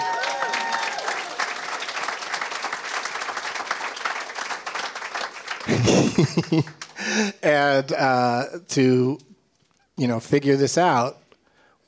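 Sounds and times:
audience applause: 0.0 - 7.3
laughter: 5.6 - 7.4
speech: 5.8 - 9.3, 10.0 - 11.2.

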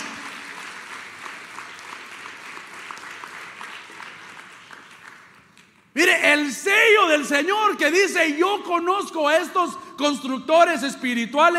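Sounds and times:
audience applause: 0.0 - 5.6
speech: 6.0 - 11.5.

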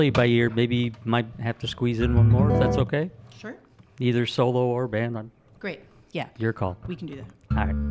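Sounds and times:
speech: 0.0 - 7.8
instrument being tuned: 2.0 - 2.9.

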